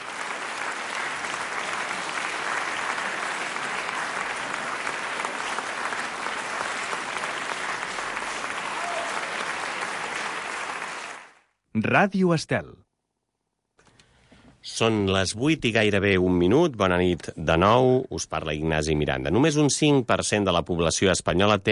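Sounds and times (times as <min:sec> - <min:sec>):
applause: 0:00.0 - 0:11.5
speech: 0:11.8 - 0:12.8, 0:14.8 - 0:21.6.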